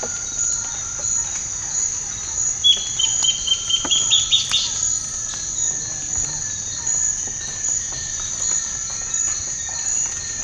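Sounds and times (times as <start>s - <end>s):
insect drone: 0.0s - 10.4s
bird high whistle: 2.7s - 4.8s.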